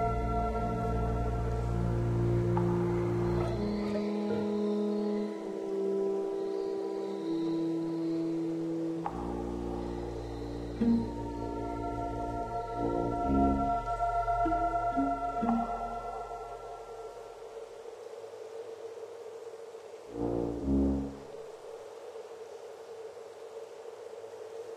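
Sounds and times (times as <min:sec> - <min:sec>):
cave instrumental ambience: 0:00.0 - 0:24.7.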